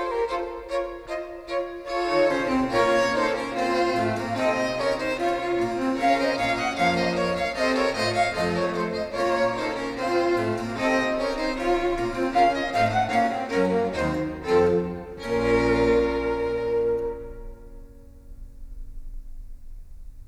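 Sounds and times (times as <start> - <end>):
orchestral suite movement in B minor: 0.0 - 18.6.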